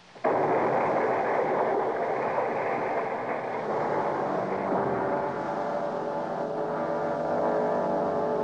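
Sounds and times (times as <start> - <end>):
thrown bottle of nitroglycerin exploding and wrecking a cottage in a radio drama: 0.0 - 8.3.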